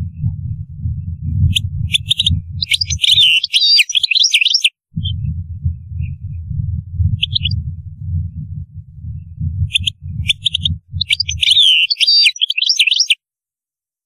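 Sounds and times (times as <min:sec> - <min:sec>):
steady low rumbling noise: 0:00.0 - 0:03.5, 0:04.9 - 0:11.8
European goldfinch twittering: 0:01.5 - 0:05.2, 0:07.2 - 0:07.6, 0:09.7 - 0:13.2.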